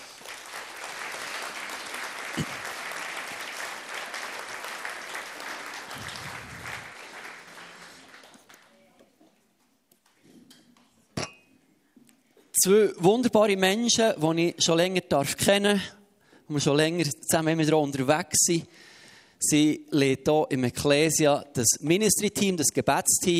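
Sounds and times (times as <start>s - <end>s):
audience applause: 0.0s - 8.8s
speech: 12.6s - 23.3s.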